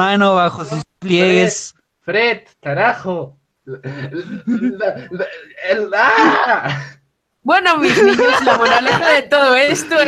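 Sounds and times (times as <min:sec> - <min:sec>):
speech: 0:00.0 - 0:10.0
person crying in sobs and wailing: 0:03.7 - 0:06.9
laughter: 0:03.7 - 0:07.0, 0:07.8 - 0:10.0.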